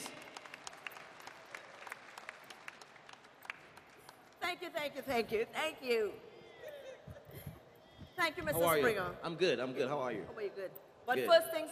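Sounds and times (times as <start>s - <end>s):
audience applause: 0.0s - 4.4s
speech: 4.5s - 6.3s, 8.2s - 11.7s.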